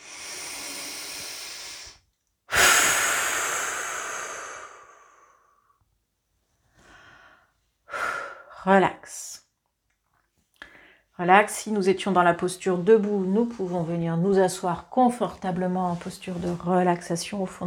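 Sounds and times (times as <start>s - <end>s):
slow deep breathing during a relaxation exercise: 0.0s - 5.8s, 6.7s - 8.5s, 10.6s - 11.1s
speech: 8.6s - 9.4s, 11.2s - 17.6s.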